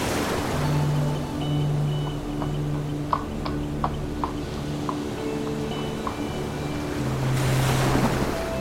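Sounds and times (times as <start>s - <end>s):
calm sea at the seaside: 0.0s - 8.6s.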